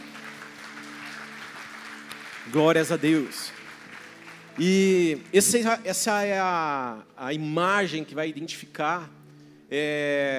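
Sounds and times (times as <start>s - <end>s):
audience round of applause: 0.0s - 5.6s
speech: 2.5s - 3.6s, 4.6s - 10.3s.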